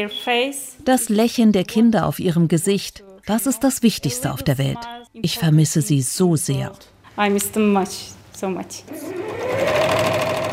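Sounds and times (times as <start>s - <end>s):
speech: 0.0s - 10.2s
sewing machine running in a sewing room: 8.9s - 10.5s.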